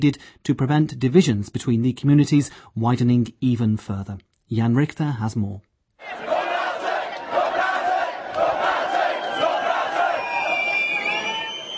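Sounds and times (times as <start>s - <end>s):
speech: 0.0s - 6.3s
marching crowd shouting slogans: 6.0s - 11.3s.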